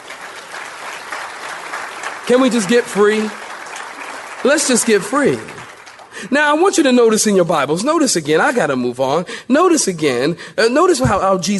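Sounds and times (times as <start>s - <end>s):
crowd clapping hands: 0.0s - 6.9s
speech: 2.3s - 3.4s, 4.4s - 5.6s, 6.2s - 11.5s.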